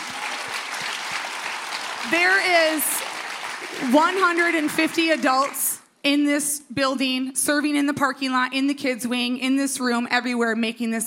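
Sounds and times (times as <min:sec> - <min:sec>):
audience clapping for the team: 0:00.0 - 0:05.8
speech: 0:02.0 - 0:03.0, 0:03.7 - 0:11.0.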